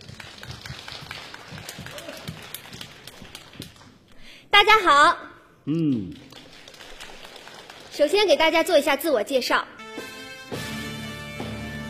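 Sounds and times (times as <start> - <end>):
audience applause welcoming performers: 0.0 - 4.0, 5.9 - 8.2
speech: 4.5 - 6.2, 8.0 - 10.1.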